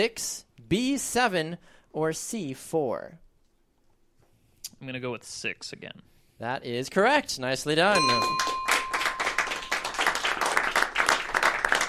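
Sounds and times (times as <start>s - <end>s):
speech: 0.0s - 3.2s, 4.7s - 8.5s
studio audience applause during a Super Bowl trivia quiz show: 8.0s - 11.8s.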